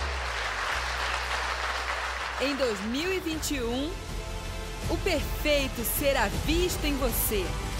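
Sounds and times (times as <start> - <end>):
audience applauding: 0.0 - 3.5
speech: 2.4 - 4.2, 4.9 - 7.7.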